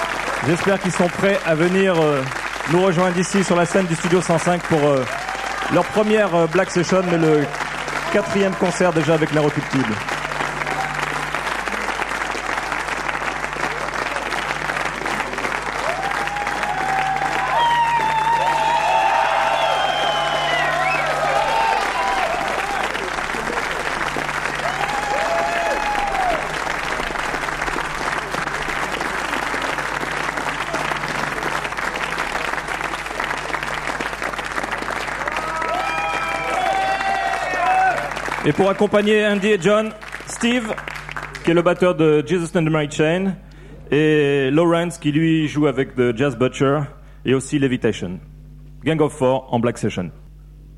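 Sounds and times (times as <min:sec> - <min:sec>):
audience applause: 0:00.0 - 0:42.2
speech: 0:00.4 - 0:10.2, 0:38.5 - 0:40.9, 0:41.5 - 0:50.2
faint cheers: 0:04.8 - 0:07.4, 0:10.5 - 0:11.2, 0:15.8 - 0:23.6, 0:24.4 - 0:26.7, 0:35.1 - 0:38.8
whistles: 0:19.4 - 0:21.1.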